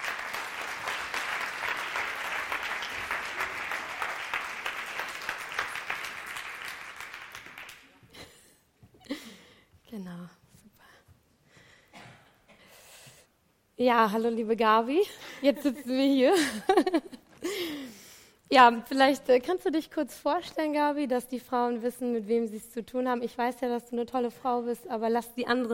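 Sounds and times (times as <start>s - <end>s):
warm audience applause: 0.0s - 8.1s
speech: 13.8s - 17.2s, 18.5s - 25.7s.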